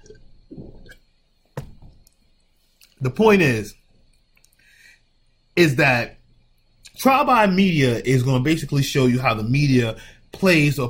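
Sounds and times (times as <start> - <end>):
person sipping iced tea: 0.0 - 1.1
speech: 3.0 - 3.8, 5.6 - 6.2, 6.9 - 10.8.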